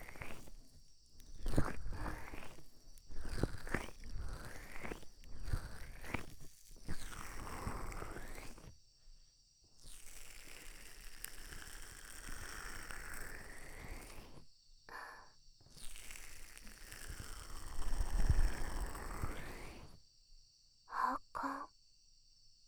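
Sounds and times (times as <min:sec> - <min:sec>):
ear massage sounds: 0:00.0 - 0:08.7, 0:09.9 - 0:14.4, 0:15.7 - 0:19.9.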